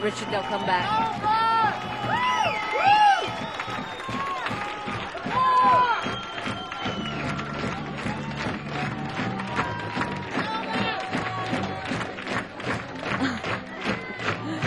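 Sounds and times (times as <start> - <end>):
speech: 0.0 - 1.4
packed club audience cheering and calling for an encore: 0.0 - 14.6.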